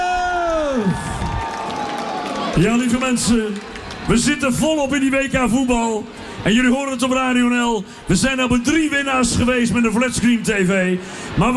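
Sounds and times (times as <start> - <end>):
crowd applauding and cheering: 0.0 - 6.2
speech: 0.8 - 1.2, 2.6 - 11.5.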